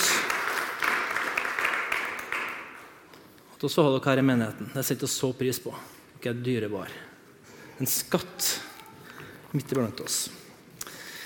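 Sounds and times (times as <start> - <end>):
audience applause: 0.0 - 2.8
speech: 3.6 - 7.1, 7.8 - 8.6, 9.5 - 10.4.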